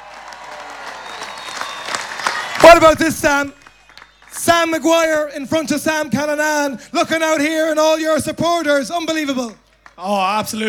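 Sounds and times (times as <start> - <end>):
large crowd applauding to welcome home a footballer with the Sam Maguire Cup: 0.0 - 4.9
speech: 2.7 - 3.6, 4.4 - 10.6.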